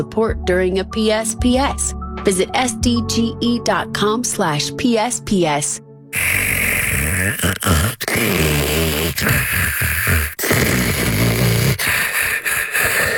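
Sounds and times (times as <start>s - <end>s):
speech: 0.0s - 6.3s, 7.2s - 10.8s
snoring: 6.2s - 13.1s.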